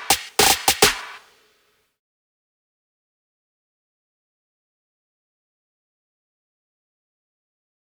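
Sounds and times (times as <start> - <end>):
snare drum: 0.1 - 1.1.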